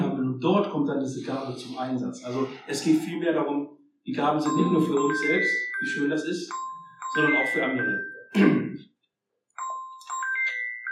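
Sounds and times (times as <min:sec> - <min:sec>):
speech: 0:00.4 - 0:08.9
mobile phone ringing: 0:04.5 - 0:08.3, 0:09.6 - 0:10.9.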